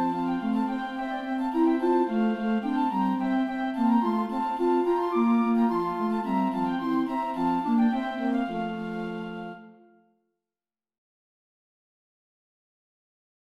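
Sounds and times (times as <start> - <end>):
flute ensemble playing a baroque piece: 0.0 - 9.9.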